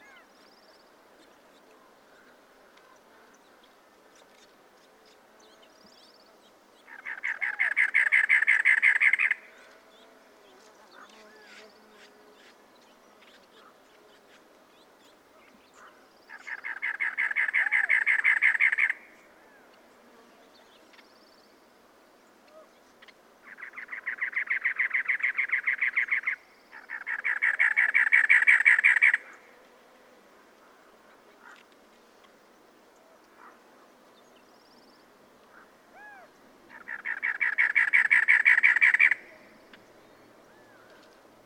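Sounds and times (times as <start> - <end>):
cactus wren calling: 0.0 - 0.3, 6.8 - 9.5, 16.3 - 19.7, 22.5 - 29.5, 35.5 - 39.8.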